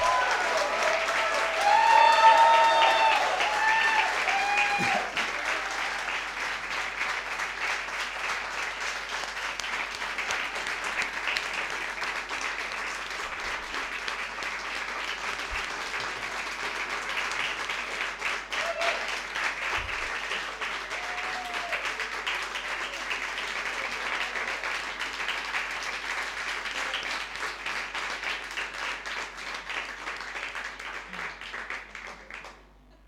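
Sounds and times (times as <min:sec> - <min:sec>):
whistles and cheers: 0:00.0 - 0:06.0
audience applause: 0:00.0 - 0:32.8.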